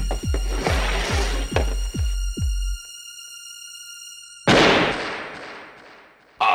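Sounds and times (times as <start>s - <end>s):
rhythmic low thuds: 0.0s - 6.1s
steady tones: 0.0s - 6.4s
pistol shot in a game of Russian roulette: 4.5s - 6.3s.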